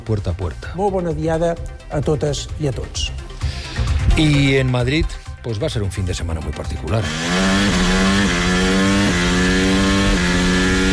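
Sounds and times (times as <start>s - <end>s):
speech: 0.0s - 3.2s, 4.2s - 8.1s
Formula 1 cars racing on city streets: 7.0s - 10.9s.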